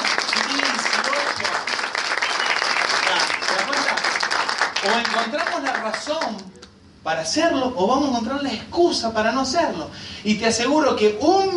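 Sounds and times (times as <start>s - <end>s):
audience applause: 0.0s - 6.5s
speech: 4.8s - 11.5s.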